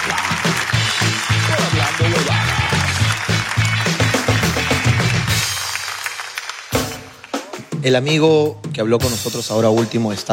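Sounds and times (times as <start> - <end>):
audience at a live comedy show applauding loudly: 0.0 - 7.5
speech: 7.8 - 10.3.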